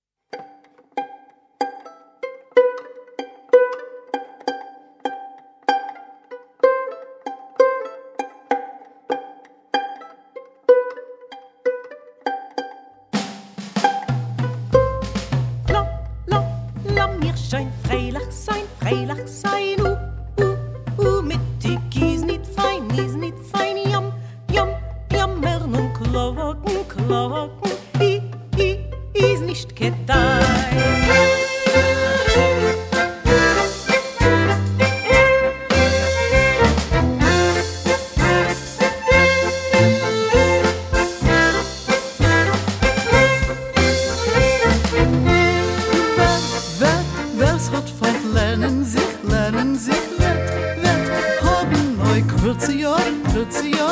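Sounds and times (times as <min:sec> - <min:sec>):
alpine klezmer music: 0:00.0 - 0:53.9.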